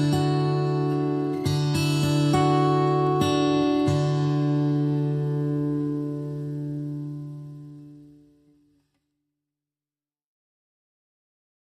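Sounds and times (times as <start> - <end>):
guitar: 0.0 - 9.1.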